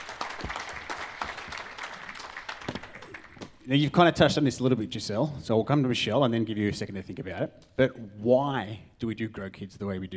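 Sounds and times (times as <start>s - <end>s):
audience applause: 0.0s - 3.7s
speech: 3.7s - 10.1s.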